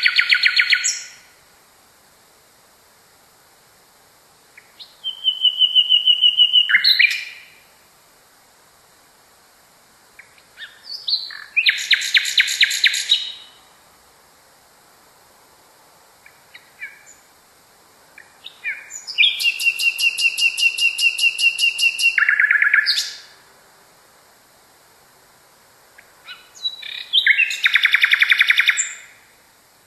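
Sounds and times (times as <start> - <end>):
nightingale singing: 0.0 - 1.3, 4.6 - 7.6, 10.2 - 13.6, 16.2 - 17.3, 18.2 - 23.3, 26.0 - 29.2.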